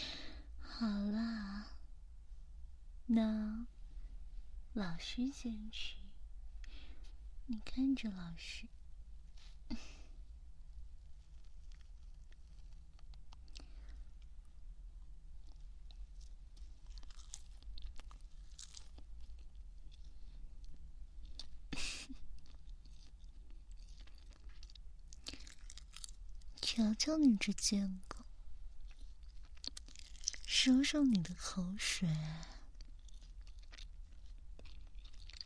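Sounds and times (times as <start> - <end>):
low hum: 0.0 - 35.4
speech: 0.8 - 1.4, 3.1 - 3.7, 4.8 - 6.0, 7.5 - 8.8, 9.7 - 9.9, 27.1 - 28.2, 30.6 - 32.6
person chewing and crunching food: 11.0 - 35.4.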